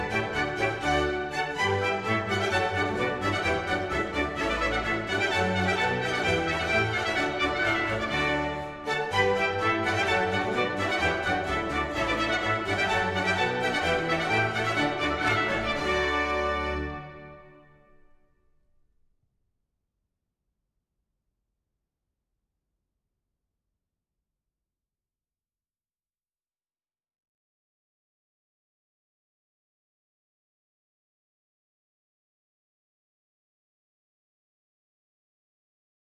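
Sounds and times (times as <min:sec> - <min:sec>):
suite bourree in D major: 0:00.0 - 0:17.6.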